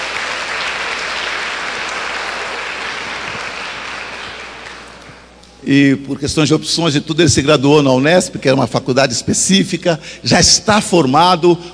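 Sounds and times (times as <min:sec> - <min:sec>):
audience applause: 0:00.0 - 0:05.3
speech: 0:05.7 - 0:11.7.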